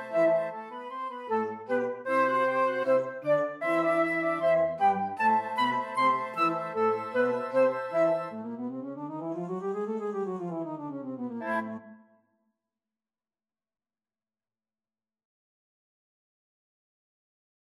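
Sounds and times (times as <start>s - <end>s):
flute: 0.0s - 12.2s.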